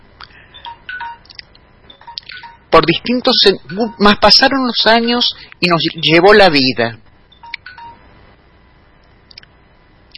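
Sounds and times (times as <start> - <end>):
short high electronic telephone beeps like keypad dialing tones: 0.6 - 1.3, 1.9 - 2.7, 7.3 - 8.0
speech: 2.8 - 7.0.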